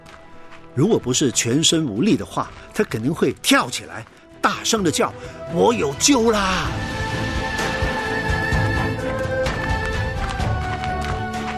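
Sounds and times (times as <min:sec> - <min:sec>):
approaching footsteps: 0:00.0 - 0:04.3, 0:07.6 - 0:11.5
speech: 0:00.8 - 0:07.3.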